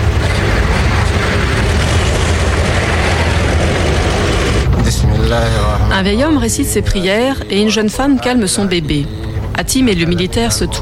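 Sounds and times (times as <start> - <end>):
heavily loaded off-road vehicle pulling away: 0.0 - 10.8
speech: 5.4 - 10.8.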